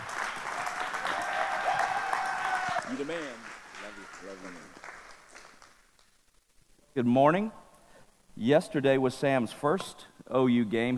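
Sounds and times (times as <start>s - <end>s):
church congregation applauding a guest pastor: 0.0s - 6.2s
speech: 2.9s - 4.9s, 7.0s - 7.6s, 8.4s - 10.9s.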